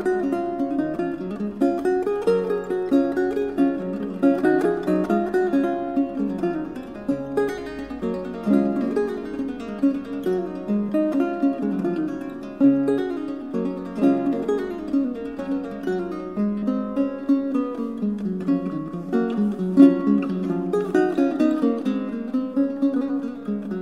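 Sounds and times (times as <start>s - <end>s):
guitar: 0.0s - 23.8s.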